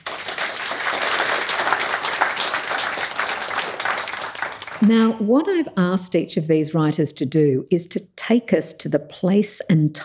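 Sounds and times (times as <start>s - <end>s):
audience applause welcoming a panel of writers at a book talk: 0.0s - 5.1s
speech: 4.8s - 10.0s.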